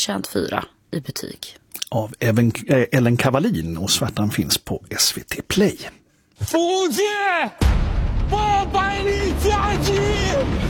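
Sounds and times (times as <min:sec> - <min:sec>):
speech: 0:00.0 - 0:10.6
war film trailer battle sounds: 0:07.5 - 0:10.6.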